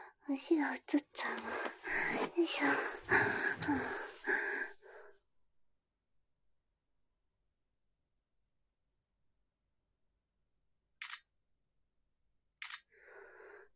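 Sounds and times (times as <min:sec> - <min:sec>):
speech: 0:00.3 - 0:04.1
breathy sound: 0:01.2 - 0:05.1
camera shutter clicks taking a photo: 0:11.0 - 0:11.3, 0:12.6 - 0:12.9.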